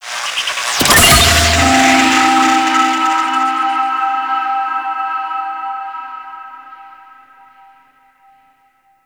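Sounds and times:
territories point capture sound effect: 0.7s - 7.0s.

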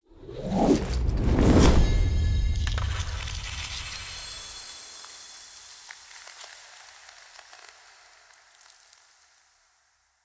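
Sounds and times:
spear activation effect: 0.2s - 4.3s.

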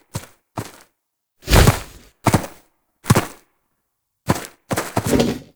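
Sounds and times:
ram idle and lunge: 1.5s - 2.1s, 5.0s - 5.5s.

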